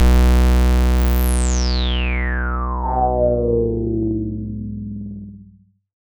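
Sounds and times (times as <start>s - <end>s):
sci-fi Prophet-5 synth effect: 0.0s - 3.6s.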